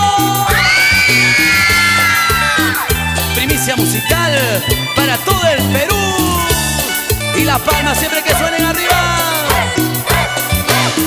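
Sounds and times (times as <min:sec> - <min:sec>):
crowd of girls screaming: 0:00.5 - 0:03.2
loud steady thumping dance beat: 0:01.2 - 0:10.3
speech: 0:04.0 - 0:05.8, 0:07.6 - 0:09.3.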